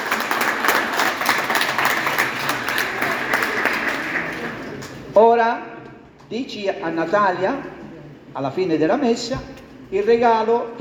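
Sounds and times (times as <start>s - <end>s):
audience applause: 0.0s - 5.2s
speech: 5.2s - 5.7s, 6.3s - 7.8s, 8.4s - 10.7s.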